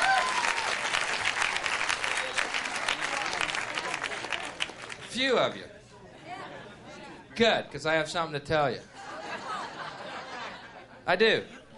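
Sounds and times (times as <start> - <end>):
live audience applause: 0.0 - 5.2
speech: 5.2 - 5.7, 7.4 - 8.9, 11.1 - 11.6
laughter: 8.9 - 11.7.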